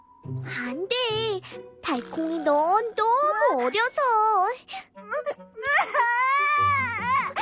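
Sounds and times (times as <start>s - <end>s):
speech: 0.3s - 6.1s
baby crying: 5.7s - 7.3s.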